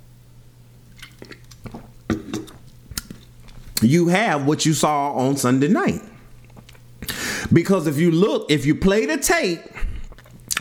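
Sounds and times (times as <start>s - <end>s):
faint steady hum: 0.0s - 10.5s
person sipping a drink and swallowing: 0.9s - 3.8s, 6.1s - 7.2s, 9.8s - 10.5s
speech: 1.2s - 1.8s, 3.8s - 6.1s, 7.5s - 9.8s.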